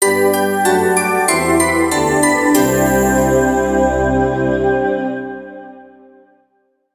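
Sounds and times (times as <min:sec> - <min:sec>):
jingle: 0:00.0 - 0:05.4.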